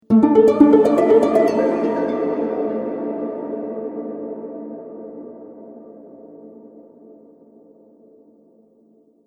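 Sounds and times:
discordant harp with delay: 0.1s - 3.9s.

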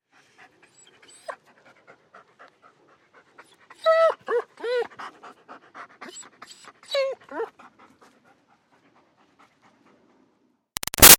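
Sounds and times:
German Shepherd panting: 0.1s - 10.5s
German Shepherd whining lightly: 3.8s - 4.9s, 6.0s - 7.5s.

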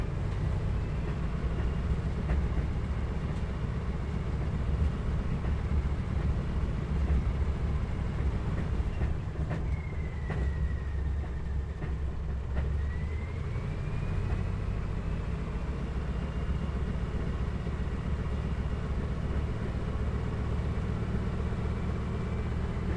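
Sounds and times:
CA-13 Boomerang aircraft taxiing heard from interior: 0.0s - 22.9s.

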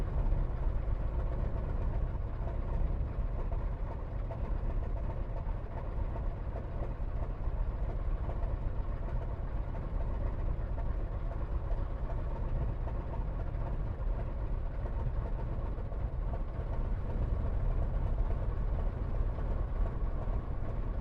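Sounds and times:
Sopwith Pup replica aircraft engine starting and idling, heard from the interior: 0.0s - 20.9s.

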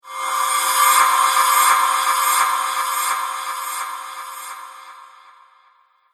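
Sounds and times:
reverse cymbal whoosh: 0.1s - 5.7s.

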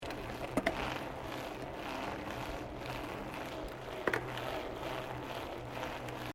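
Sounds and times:
mountain bike gear change on a road: 0.0s - 6.3s.

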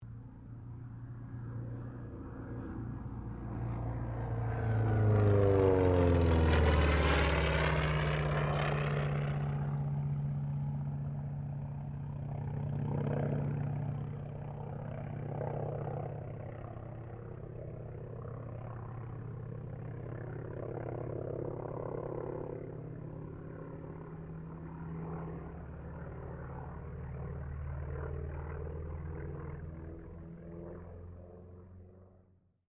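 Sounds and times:
T-28D Trojan aircraft passing: 0.0s - 32.6s.

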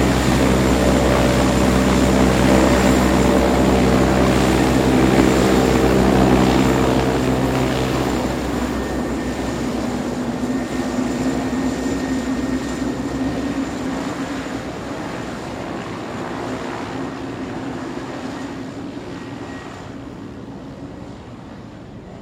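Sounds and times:
large multi-propeller airplane taxiing: 0.0s - 22.2s.

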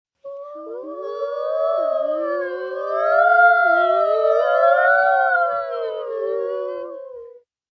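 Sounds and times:
three children imitating ghosts, high-pitched: 0.2s - 7.4s.

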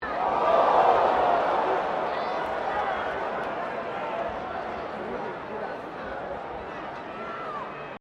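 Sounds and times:
crowd of 15,000 booing at a Rugby World Cup game: 0.0s - 5.3s.

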